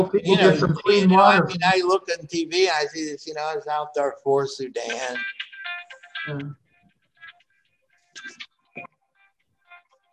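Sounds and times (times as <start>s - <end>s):
speech: 0.0s - 5.4s, 6.2s - 6.6s
phone ringtone with a bright melodic electronic tune: 4.8s - 6.4s.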